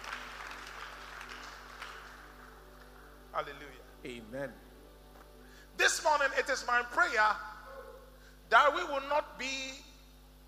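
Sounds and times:
audience clapping: 0.0s - 3.1s
speech: 3.4s - 4.7s, 5.8s - 7.5s, 8.5s - 9.9s.

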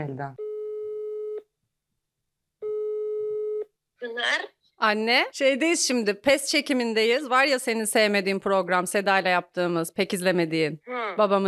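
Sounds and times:
speech: 0.0s - 0.4s, 4.0s - 11.4s
phone ringback tone on a call to someone's mother in Malatya: 0.4s - 1.4s, 2.6s - 3.7s.

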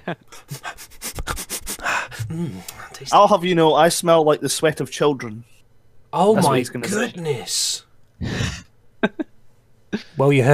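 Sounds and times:
speech: 0.0s - 0.7s, 2.3s - 9.2s, 9.9s - 10.5s
person sniffing: 0.4s - 2.7s.

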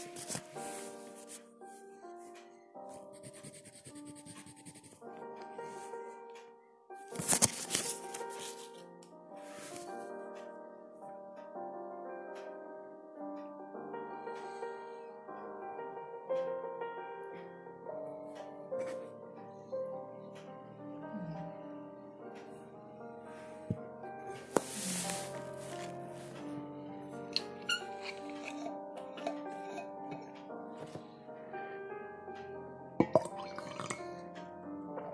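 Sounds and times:
pages turning: 0.0s - 1.4s, 7.1s - 10.0s, 24.5s - 26.0s
soft K-pop piano music: 0.0s - 35.1s.

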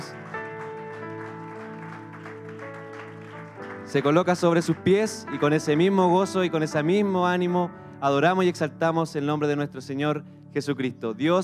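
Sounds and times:
audience applause of praise: 0.0s - 4.8s
speech: 3.9s - 11.4s.

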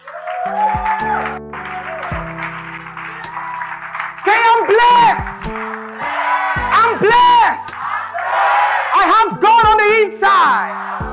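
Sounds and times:
audience applause: 0.0s - 8.9s
speech: 9.1s - 10.8s.

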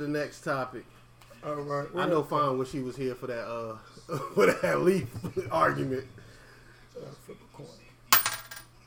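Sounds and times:
speech: 0.0s - 6.3s, 7.0s - 7.8s
laughter: 4.0s - 6.1s
flipped coin landing with a clink and rattle: 8.1s - 8.7s.

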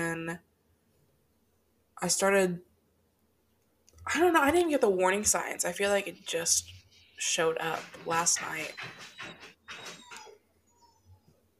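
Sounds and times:
speech: 0.1s - 0.5s, 2.0s - 2.7s, 4.0s - 10.0s
dogs scratching on a door: 6.2s - 10.4s.

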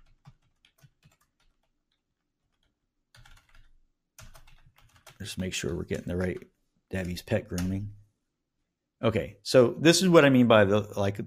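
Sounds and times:
keystrokes on a computer keyboard typing a business name: 0.0s - 8.0s
speech: 5.2s - 8.0s, 9.0s - 11.2s.

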